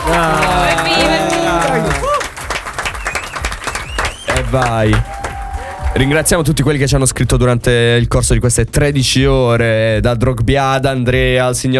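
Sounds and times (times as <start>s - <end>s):
group applauding: 0.0s - 7.0s
speech: 4.5s - 5.2s, 6.0s - 11.7s.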